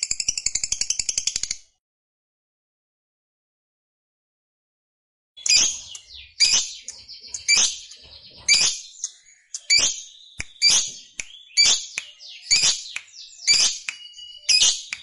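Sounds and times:
lovebird shrill scratchy chirps: 0:05.4 - 0:14.9.

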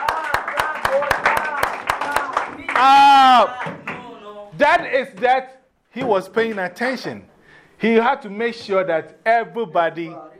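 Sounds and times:
group clapping: 0:00.0 - 0:04.2
speech: 0:02.8 - 0:03.7, 0:04.6 - 0:10.3.

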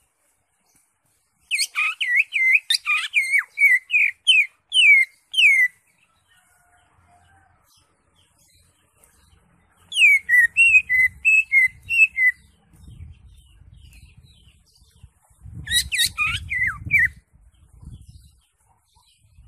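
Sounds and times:
Greater Green Leafbird singing varied phrases: 0:00.6 - 0:06.7, 0:07.8 - 0:19.4.

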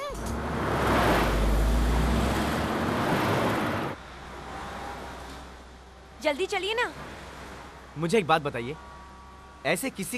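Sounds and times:
steady wash of traffic noise: 0:00.0 - 0:10.1
car engine revving and pulling away at a green traffic signal: 0:00.2 - 0:05.1
speech: 0:06.2 - 0:07.1, 0:08.0 - 0:08.9, 0:09.6 - 0:10.1.

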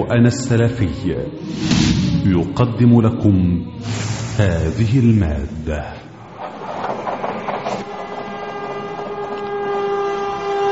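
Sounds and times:
speech: 0:00.0 - 0:06.0
train passing: 0:00.6 - 0:10.6
train horn: 0:07.4 - 0:10.6.

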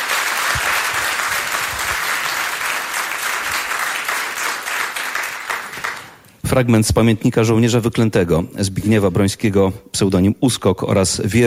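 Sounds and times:
large audience applause after a concert performance: 0:00.0 - 0:06.3
speech: 0:06.5 - 0:11.4.

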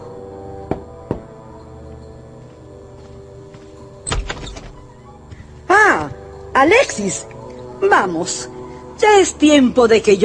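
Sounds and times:
door opening: 0:04.0 - 0:05.4
speech: 0:06.6 - 0:10.2.

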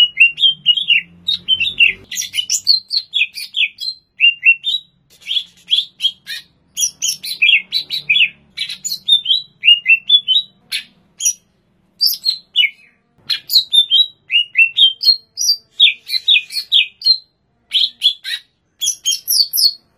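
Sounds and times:
greater green leafbird song in Banyuwangi, Indonesia: 0:00.0 - 0:19.9.

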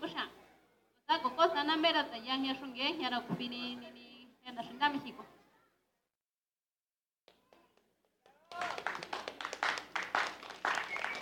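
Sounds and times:
speech: 0:01.6 - 0:05.4
audience applause: 0:08.3 - 0:11.2.

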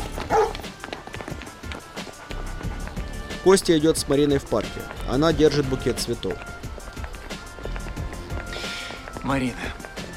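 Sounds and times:
dog running footsteps: 0:00.0 - 0:10.1
dog barking: 0:00.2 - 0:00.7
speech: 0:03.4 - 0:06.6, 0:09.3 - 0:09.8.

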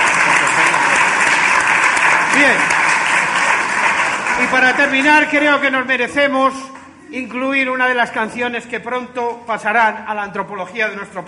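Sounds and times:
audience applause: 0:00.0 - 0:05.7
speech: 0:02.4 - 0:02.8, 0:04.4 - 0:11.2.

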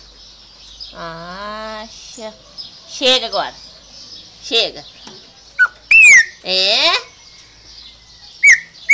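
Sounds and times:
speech: 0:00.9 - 0:03.7, 0:04.5 - 0:05.0, 0:06.4 - 0:07.1
chopi blackbird whistling ringing notes: 0:05.6 - 0:06.4, 0:08.4 - 0:08.9.

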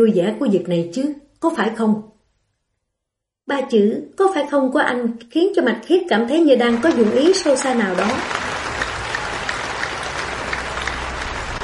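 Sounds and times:
speech: 0:00.0 - 0:02.1, 0:03.5 - 0:08.4
applause from many hands: 0:06.6 - 0:11.6.

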